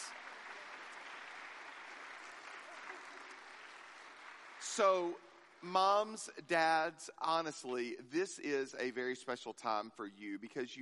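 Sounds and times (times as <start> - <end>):
audience applause: 0.0 - 6.2
speech: 4.7 - 10.8.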